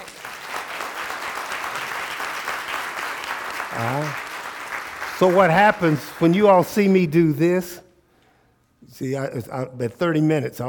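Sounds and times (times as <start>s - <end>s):
audience hand clapping: 0.0s - 6.8s
speech: 3.8s - 4.3s, 5.2s - 7.8s, 9.0s - 10.6s.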